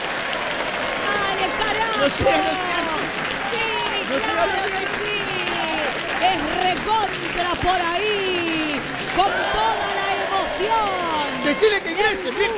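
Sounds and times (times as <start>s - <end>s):
applause sound effect: 0.0s - 12.5s
several people talking and calling out: 1.1s - 12.5s
speech: 2.0s - 2.7s, 4.1s - 5.2s, 6.2s - 10.0s, 10.6s - 12.5s.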